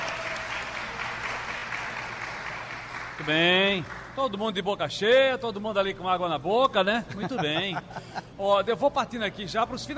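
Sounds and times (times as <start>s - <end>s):
audience applause: 0.0s - 4.2s
speech: 3.2s - 9.9s
laughter: 7.0s - 8.5s.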